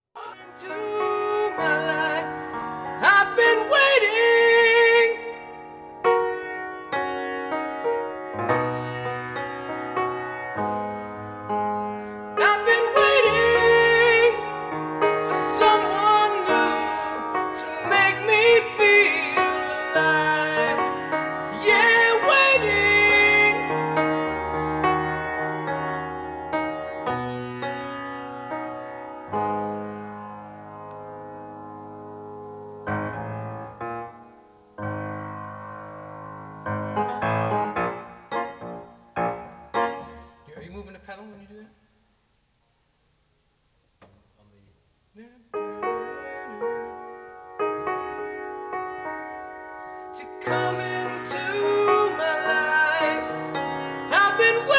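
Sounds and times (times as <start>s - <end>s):
piano and vocal mix: 0.1s - 41.7s, 44.4s - 54.7s.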